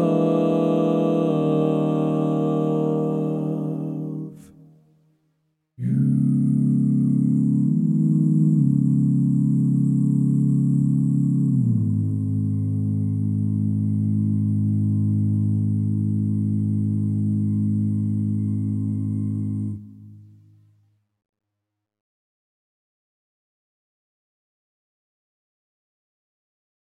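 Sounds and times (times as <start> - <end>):
bass singing: 0.0 - 4.5, 5.8 - 19.8.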